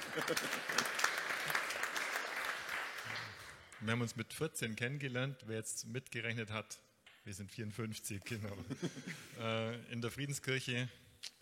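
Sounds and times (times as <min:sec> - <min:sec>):
laughter: 0:00.0 - 0:01.0, 0:08.4 - 0:09.4
audience applause: 0:00.0 - 0:03.8
speech: 0:00.2 - 0:01.1, 0:03.8 - 0:11.0.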